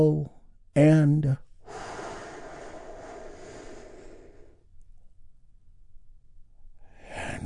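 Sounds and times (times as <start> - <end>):
speech: 0.0 - 1.9
deep breath drawn in and slowly let out: 1.6 - 4.8.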